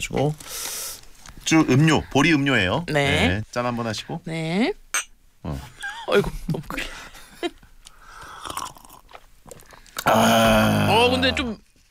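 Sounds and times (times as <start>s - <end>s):
speech: 0.0s - 0.6s, 1.5s - 4.8s, 5.4s - 6.9s, 10.1s - 11.6s
crunching macaroni snack while chewing: 8.2s - 10.2s.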